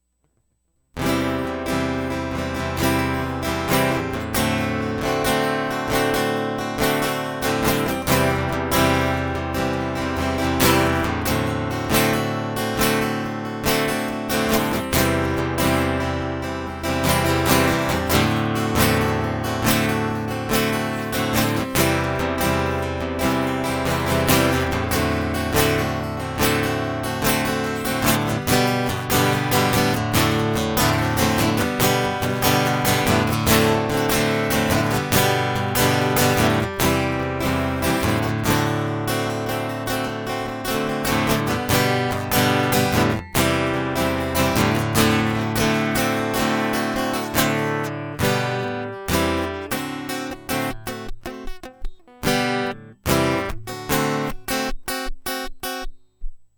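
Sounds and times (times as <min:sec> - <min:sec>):
guitar: 0:00.9 - 0:56.2.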